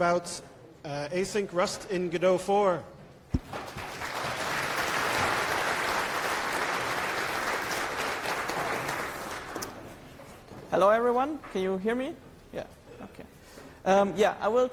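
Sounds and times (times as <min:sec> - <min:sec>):
speech: 0:00.0 - 0:03.8, 0:10.7 - 0:14.7
conference audience applause welcoming a speaker: 0:03.5 - 0:09.8.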